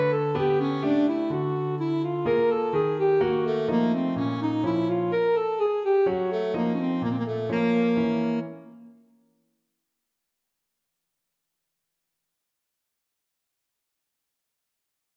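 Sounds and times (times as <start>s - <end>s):
saxophone playing a mazurka: 0.0s - 9.0s.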